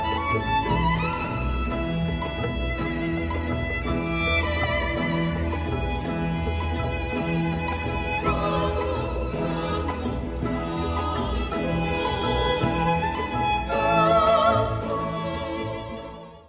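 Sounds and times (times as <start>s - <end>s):
charango: 0.0s - 16.4s
guitar: 0.0s - 16.4s
percussion: 0.0s - 16.4s
solo violin: 0.0s - 16.4s
vocal quartet singing: 7.8s - 16.4s.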